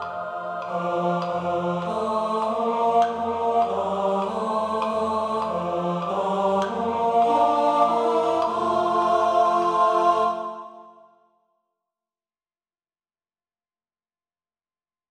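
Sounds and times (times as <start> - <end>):
tenor voice singing: 0.0 - 11.0.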